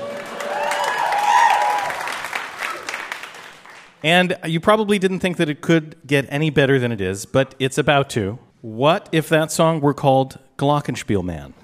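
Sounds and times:
audience applause: 0:00.0 - 0:04.0
speech: 0:04.0 - 0:11.6.

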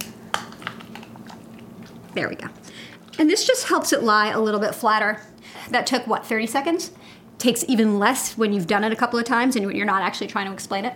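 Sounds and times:
chicken keel bone cracking under palm: 0:00.0 - 0:02.2
low steady hum: 0:00.0 - 0:10.9
speech: 0:02.1 - 0:10.9.

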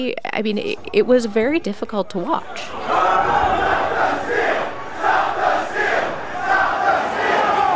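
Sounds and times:
speech: 0:00.0 - 0:03.8
mob shouting while storming the Capitol: 0:02.7 - 0:07.7.

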